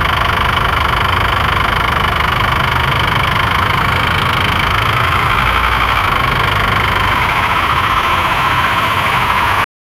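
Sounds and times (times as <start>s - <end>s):
Dacia 1310 car engine: 0.0s - 9.7s.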